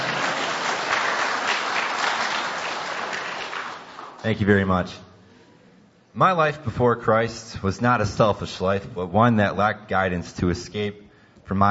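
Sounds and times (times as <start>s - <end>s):
audience clapping: 0.0s - 4.7s
speech: 4.2s - 5.1s, 6.2s - 11.6s.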